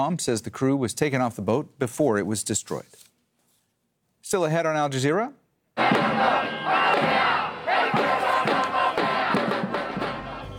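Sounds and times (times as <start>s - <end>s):
speech: 0.0s - 3.1s, 4.3s - 7.3s
street protest crowd shouting: 5.8s - 10.5s.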